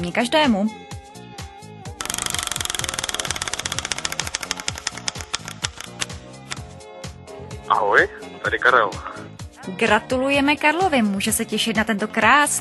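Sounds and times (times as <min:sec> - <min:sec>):
speech: 0:00.0 - 0:00.8, 0:07.7 - 0:12.5
wheel of fortune spinning and clicking: 0:02.0 - 0:06.6.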